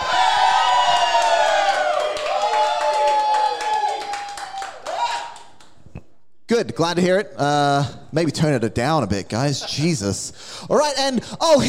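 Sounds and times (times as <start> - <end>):
audience clapping: 0.1 - 5.9
speech: 6.6 - 11.6.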